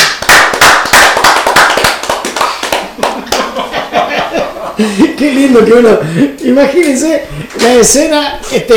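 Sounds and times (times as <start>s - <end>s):
applause: 0.0s - 3.5s
laughter: 2.9s - 5.6s
speech: 4.8s - 8.7s.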